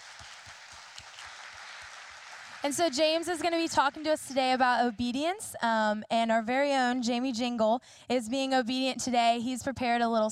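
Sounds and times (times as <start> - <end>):
church congregation applauding at a morning worship service: 0.0 - 4.1
speech: 2.6 - 10.3.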